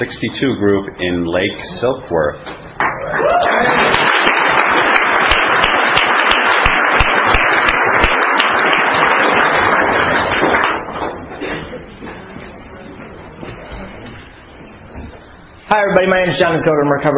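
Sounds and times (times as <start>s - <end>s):
speech: 0.0s - 3.9s, 15.7s - 17.1s
audience applause welcoming a speaker at an Alcoholics Anonymous meeting: 3.0s - 11.2s.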